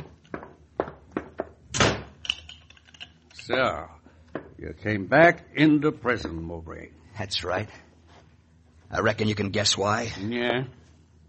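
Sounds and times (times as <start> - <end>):
closet door wooden thuds in a prison: 0.3 - 2.2
speech: 3.5 - 4.0, 4.6 - 7.9, 8.9 - 10.8.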